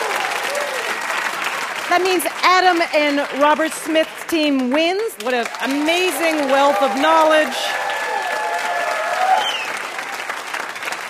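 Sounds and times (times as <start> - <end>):
faint whistles and cheers from an audience: 0.0 - 1.1, 6.1 - 10.3
audience applause: 0.0 - 11.0
speech: 1.9 - 7.8.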